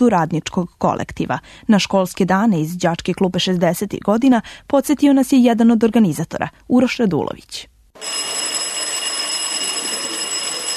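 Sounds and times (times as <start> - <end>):
speech: 0.0 - 8.5
school bell ringing: 8.0 - 10.7.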